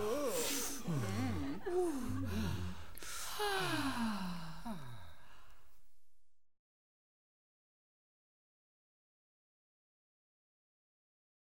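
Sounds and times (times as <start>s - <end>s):
tavern patrons laughing: 0.0s - 4.1s.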